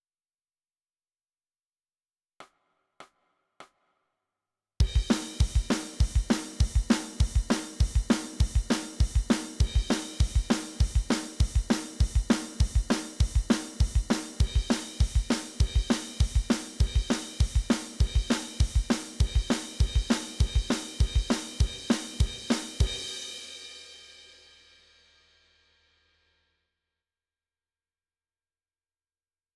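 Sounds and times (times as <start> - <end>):
drums: 4.8 - 25.6.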